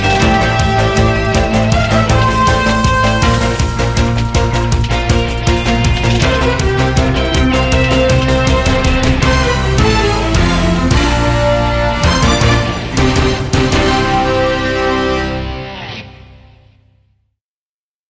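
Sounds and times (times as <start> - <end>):
opening theme music: 0.0 - 16.8.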